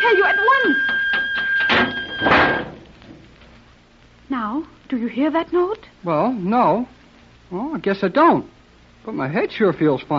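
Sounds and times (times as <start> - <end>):
door being closed: 0.8 - 3.3
speech: 4.9 - 10.1.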